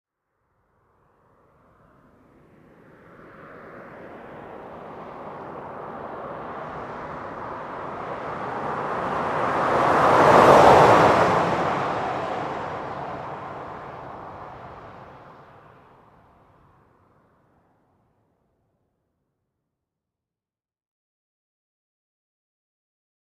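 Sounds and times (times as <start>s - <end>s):
Ford Expedition passing by at 40 mph: 1.0s - 17.2s.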